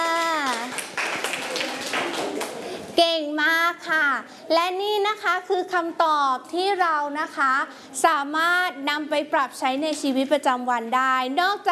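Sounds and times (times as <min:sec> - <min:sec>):
children clapping for a classmate during a Thai lesson: 0:00.0 - 0:02.7
speech: 0:03.8 - 0:11.7.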